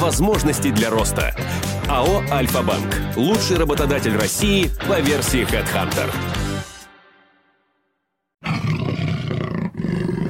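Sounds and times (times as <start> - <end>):
speech: 0.1 - 6.4
Amur leopard growling roar: 8.4 - 10.2.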